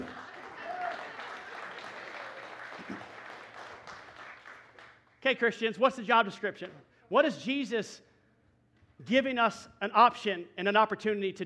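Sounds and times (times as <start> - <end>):
audience clapping: 0.0 - 5.2
speech: 5.3 - 8.1, 9.0 - 11.4.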